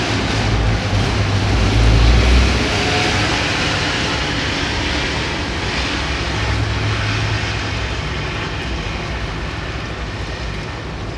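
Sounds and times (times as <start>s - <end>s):
car passing: 0.0s - 11.0s.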